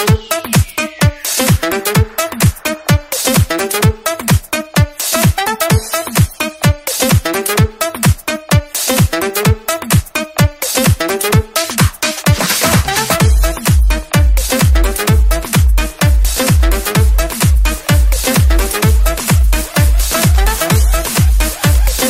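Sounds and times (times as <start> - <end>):
disco night ringtone: 0.0 - 22.0.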